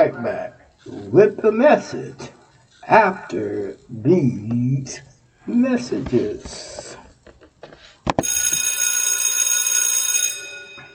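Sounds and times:
speech: 0.0s - 2.3s, 2.9s - 7.0s
school bell ringing: 8.2s - 10.9s.

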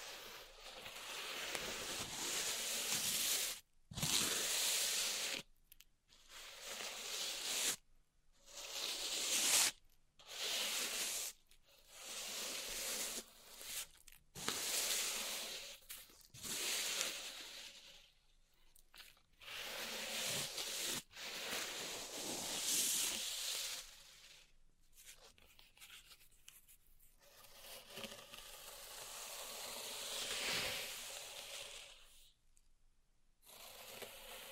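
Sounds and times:
pink salt zen garden scraping and raking: 0.0s - 5.4s, 6.3s - 7.8s, 8.5s - 18.0s, 19.4s - 24.4s, 27.6s - 32.1s.

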